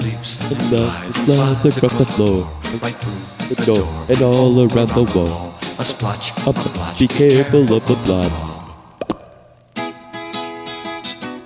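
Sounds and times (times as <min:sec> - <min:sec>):
speech: 0:00.2 - 0:08.5
wet plops: 0:08.9 - 0:09.5.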